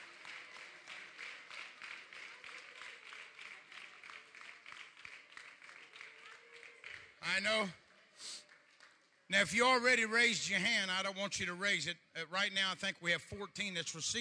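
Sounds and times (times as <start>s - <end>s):
audience hand clapping: 0.0s - 9.0s
speech: 7.3s - 7.8s, 9.3s - 14.1s.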